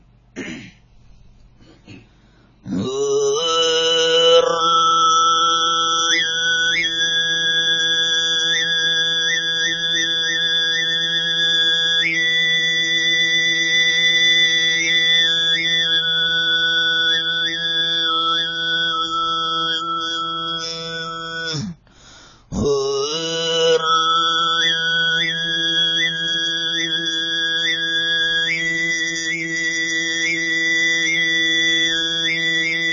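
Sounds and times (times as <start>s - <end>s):
soft throaty noises: 0.3s - 4.4s
whistle-tone throat singing khoomei performance: 2.6s - 32.9s.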